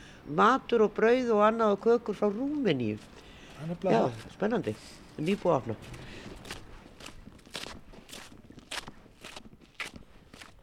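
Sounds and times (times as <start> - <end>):
speech: 0.3 - 6.6
footsteps of people walking along Reykjavík streets Aðalstræti, Vesturgata and Grófin: 2.9 - 10.6.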